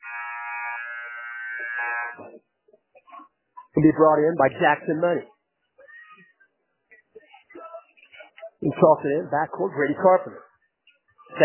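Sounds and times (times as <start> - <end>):
basketball game buzzer: 0.0 - 2.2
speech: 1.6 - 2.6, 3.8 - 5.4, 8.6 - 10.4.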